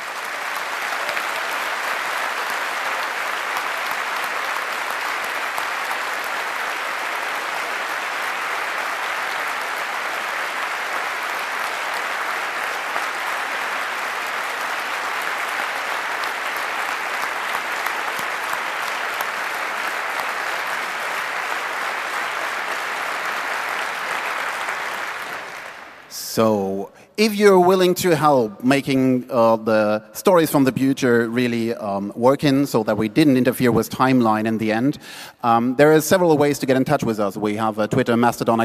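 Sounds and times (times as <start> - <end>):
large audience applause: 0.0 - 26.2
speech: 26.4 - 38.6.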